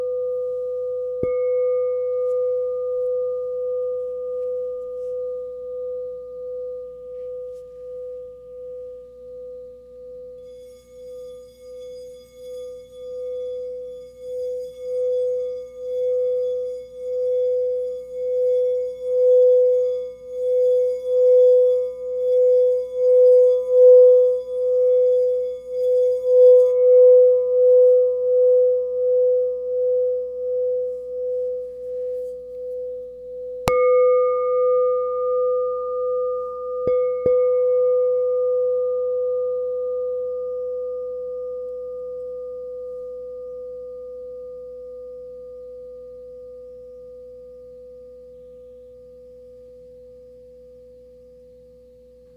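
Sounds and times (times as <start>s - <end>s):
crystal singing bowls ringing: 0.1s - 8.9s, 10.2s - 32.3s, 33.4s - 44.2s.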